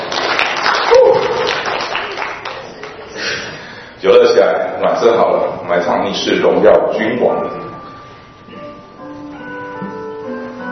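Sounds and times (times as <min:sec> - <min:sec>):
audience applause: 0:00.0 - 0:03.6
speech: 0:04.8 - 0:07.6.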